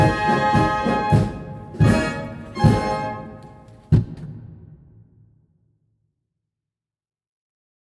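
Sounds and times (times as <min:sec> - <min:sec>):
polka music: 0:00.0 - 0:03.9.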